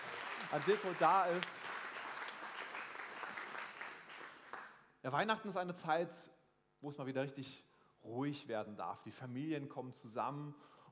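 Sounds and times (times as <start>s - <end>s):
audience applause: 0.0s - 4.8s
speech: 0.5s - 1.6s, 5.0s - 10.8s.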